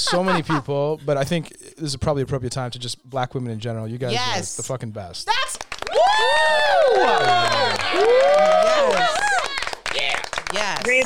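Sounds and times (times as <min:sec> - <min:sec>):
speech: 0:00.1 - 0:09.3, 0:10.5 - 0:11.0
clapping: 0:05.5 - 0:11.0
podcast audience cheering for a co-host: 0:05.8 - 0:11.0.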